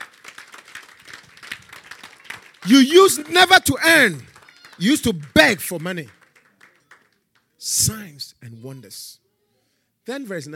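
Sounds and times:
church congregation rhythmic hand clapping: 0.0 - 7.5
speech: 2.6 - 6.2, 7.6 - 9.2, 10.1 - 10.5.

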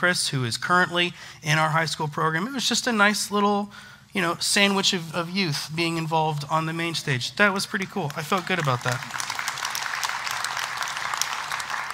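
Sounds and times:
speech: 0.0 - 9.4
audience applause: 8.1 - 11.9.

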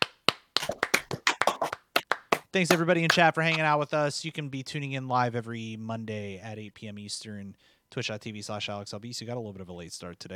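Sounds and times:
hands clapping: 0.0 - 3.7
speech: 2.5 - 10.3.

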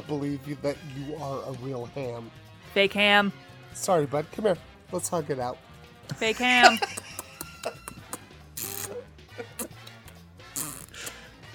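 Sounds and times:
speech: 0.1 - 7.1
laughter: 6.1 - 8.2
kissing smacks: 6.8 - 11.3.

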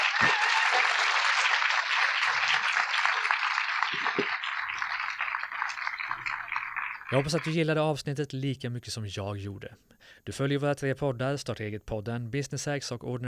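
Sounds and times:
audience applause: 0.0 - 7.6
speech: 7.1 - 13.2.

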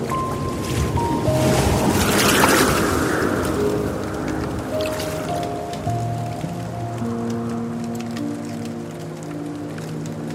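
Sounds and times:
gentle water of a waterfall: 0.0 - 10.3
soft dreamy piano notes: 0.0 - 10.3.

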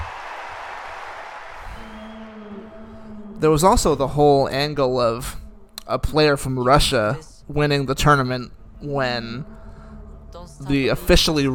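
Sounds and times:
tennis crowd cheering and applauding: 0.0 - 2.6
speech: 3.4 - 9.6, 10.6 - 11.5.

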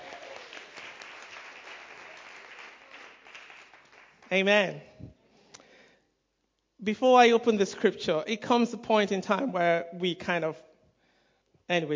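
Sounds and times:
audience applause: 0.0 - 4.3
speech: 4.3 - 5.1, 6.8 - 10.7, 11.7 - 11.9.

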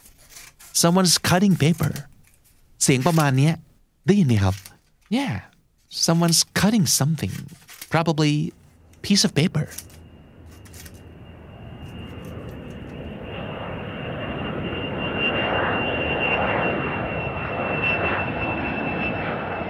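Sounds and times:
airplane flying overhead: 0.0 - 4.7, 6.1 - 19.6
speech: 0.8 - 2.1, 2.8 - 10.0.

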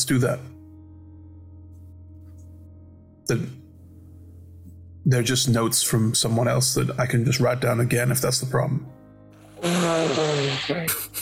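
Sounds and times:
speech: 0.0 - 0.5, 3.3 - 3.6, 5.0 - 9.0, 9.6 - 11.2
loud drawn-out sneeze: 9.6 - 11.0.

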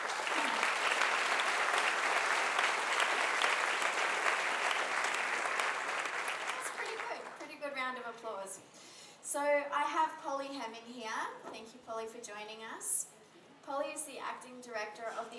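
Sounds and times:
audience applause: 0.0 - 7.4
speech: 8.0 - 13.0, 13.7 - 15.3.

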